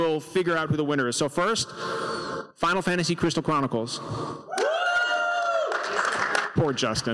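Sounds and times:
speech: 0.2 - 4.6, 6.6 - 7.1
thin tepid cheer: 4.5 - 5.9
scattered claps: 5.7 - 7.1.

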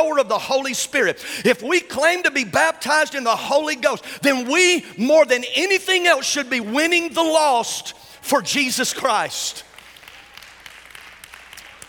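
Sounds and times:
speech: 0.0 - 9.7
scattered thin applause from a crowd in a reverberant room: 9.6 - 11.8.

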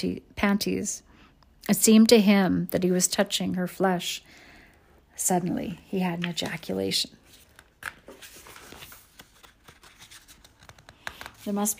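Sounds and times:
speech: 0.0 - 4.4, 5.2 - 7.2, 11.4 - 11.7
book pages being turned: 6.0 - 11.7
soft crinkly paper rustling: 6.0 - 11.7.

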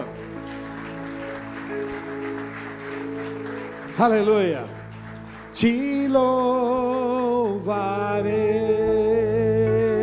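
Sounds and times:
audience applause: 0.0 - 7.2
sustained keyboard chords: 0.0 - 10.0
speech: 4.0 - 4.8, 5.6 - 9.2.

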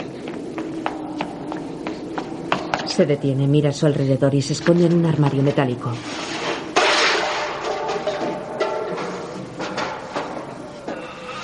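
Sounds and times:
boy running down a hotel corridor in The Shining: 0.0 - 3.1
low hum: 0.0 - 11.4
speech: 3.0 - 6.3.

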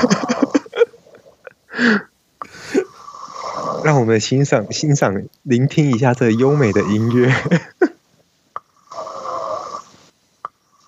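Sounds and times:
speech: 1.8 - 2.0, 3.9 - 7.7
person snoring: 2.5 - 4.1, 6.3 - 7.6, 8.7 - 10.0.

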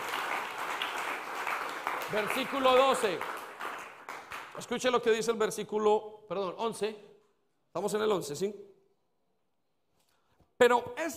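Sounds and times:
crowd clapping: 0.0 - 5.1
speech: 2.1 - 3.4, 4.6 - 7.1, 7.7 - 8.7, 10.6 - 11.1.

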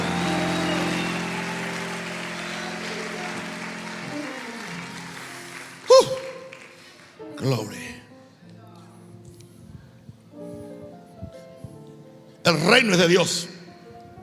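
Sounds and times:
audience clapping: 0.0 - 7.7
speech: 7.4 - 8.0, 12.5 - 13.5.

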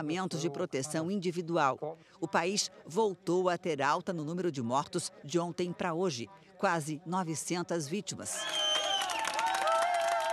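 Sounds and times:
speech: 0.0 - 8.7
sustained whistle-like tones: 8.4 - 9.2
medical staff applauding: 8.4 - 10.3
people cheering: 8.4 - 10.3.

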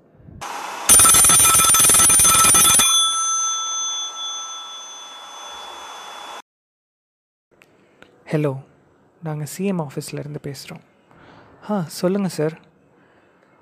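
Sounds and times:
telephone ringing: 0.9 - 6.4
speech: 8.3 - 10.9, 11.6 - 12.7.

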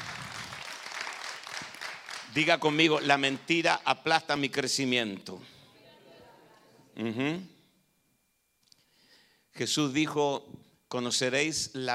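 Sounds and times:
audience applauding: 0.0 - 3.6
speech: 2.3 - 5.5, 7.0 - 7.5, 9.6 - 11.9.

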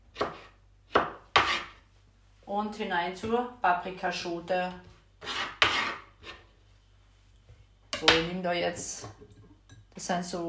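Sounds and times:
knife chopping pickled gherkins on a board: 0.2 - 1.7, 5.2 - 6.0
speech: 2.5 - 5.4, 8.0 - 9.4, 10.0 - 10.4.

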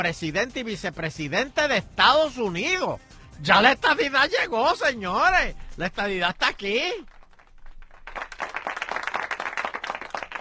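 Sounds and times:
speech: 0.0 - 7.1
applause sound effect from button: 6.0 - 10.3.

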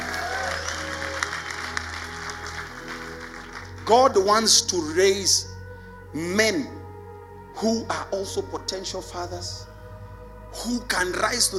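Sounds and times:
audience clapping: 0.0 - 4.3
speech: 3.9 - 5.5, 6.1 - 6.8, 7.6 - 9.7, 10.6 - 11.5.

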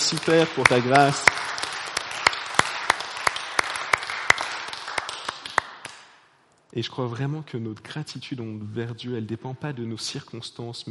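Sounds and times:
audience applauding: 0.0 - 6.0
speech: 0.1 - 1.5, 6.8 - 10.8.

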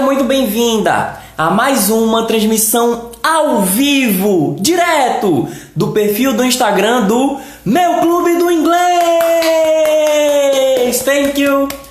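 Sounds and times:
speech: 0.2 - 11.8
rhythmic clapping: 7.9 - 11.9.

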